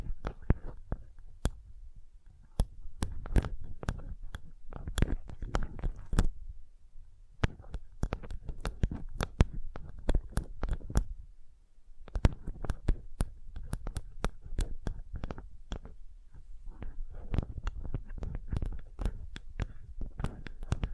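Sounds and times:
gentle tapping: 2.4s - 6.4s, 7.4s - 11.2s, 12.0s - 16.0s, 16.7s - 20.9s.

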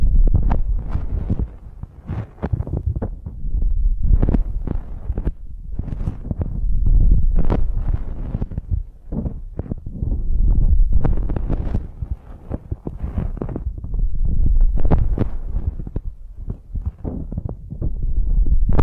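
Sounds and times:
ear massage rubbing and thumping: 0.0s - 18.8s.

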